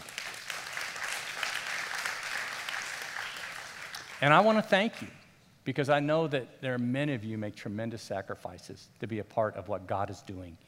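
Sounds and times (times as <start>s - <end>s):
crowd clapping: 0.0s - 4.5s
speech: 4.2s - 10.6s.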